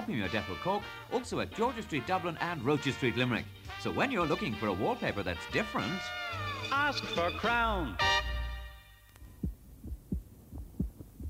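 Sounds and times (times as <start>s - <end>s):
speech: 0.1s - 8.2s
human heartbeat: 9.3s - 11.2s.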